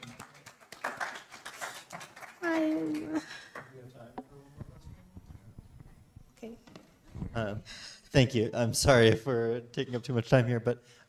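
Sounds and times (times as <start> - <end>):
scattered audience clapping: 0.0 - 3.8
speech: 2.5 - 4.6, 7.4 - 11.0.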